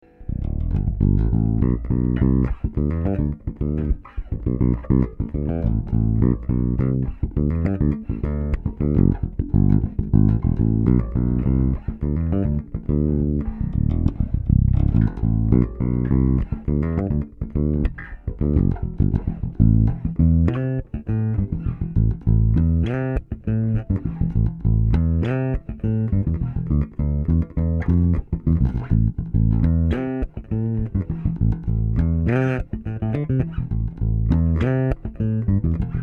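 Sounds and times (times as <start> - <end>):
Masterbuilt Woodblock fingerstyle playing: 0.0 - 36.0.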